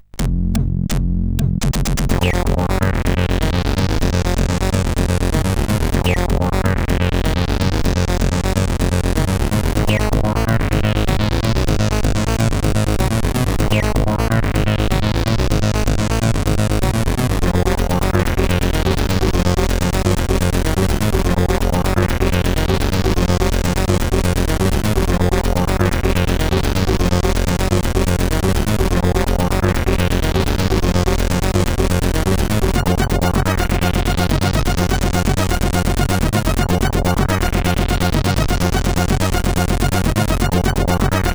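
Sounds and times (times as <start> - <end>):
techno on CSG8580 SID chip: 0.0 - 41.3.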